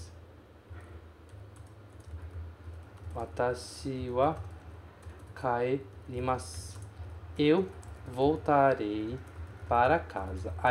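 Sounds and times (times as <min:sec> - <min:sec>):
steady low hum: 0:00.0 - 0:10.7
computer keyboard typing a Japanese sentence: 0:01.2 - 0:09.8
speech: 0:03.2 - 0:04.5, 0:05.4 - 0:06.8, 0:07.4 - 0:10.7.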